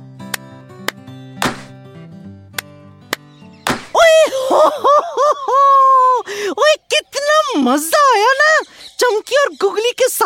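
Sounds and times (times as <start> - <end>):
hand claps: 0.3 - 1.7
foot stomp: 1.4 - 1.7, 3.7 - 4.0
laughter: 4.0 - 6.3
speech: 4.5 - 10.2.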